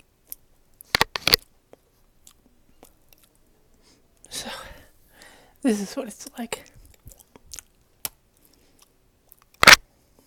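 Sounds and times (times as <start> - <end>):
food chewing crunch: 0.0 - 3.4, 6.6 - 10.2
speech: 5.6 - 6.7.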